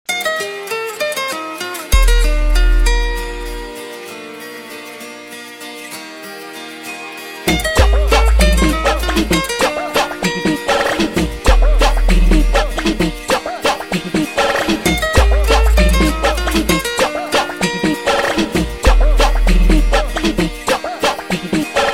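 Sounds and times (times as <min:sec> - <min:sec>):
funk music: 0:01.9 - 0:03.8, 0:07.5 - 0:21.9.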